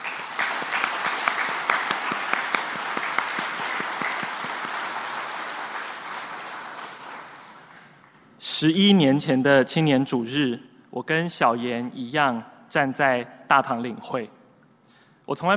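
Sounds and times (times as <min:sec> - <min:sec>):
audience applause: 0:00.0 - 0:08.2
speech: 0:08.6 - 0:14.4, 0:15.3 - 0:15.5.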